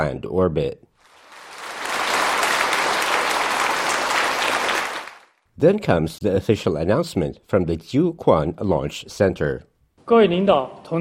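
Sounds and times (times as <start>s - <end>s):
speech: 0.0s - 0.8s, 5.6s - 10.9s
engineers and scientists applauding: 1.0s - 5.4s.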